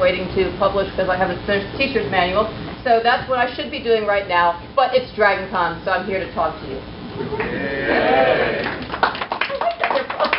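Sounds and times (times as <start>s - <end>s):
speech: 0.0s - 9.2s
drawn-out vocal sound: 7.2s - 8.8s
audience applauding: 7.4s - 10.3s.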